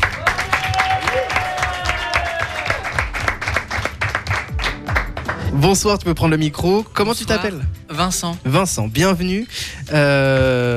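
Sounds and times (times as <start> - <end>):
audience applause: 0.0 - 5.5
speech: 5.6 - 10.7.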